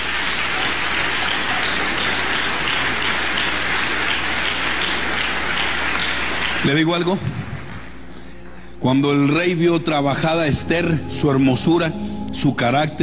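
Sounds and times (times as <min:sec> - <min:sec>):
audience applause: 0:00.0 - 0:08.0
speech: 0:06.6 - 0:07.5, 0:08.8 - 0:13.0.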